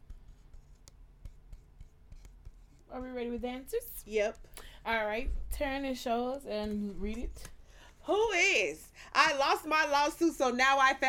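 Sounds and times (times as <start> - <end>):
writing on paper: 0.0 - 4.5
speech: 2.9 - 11.0.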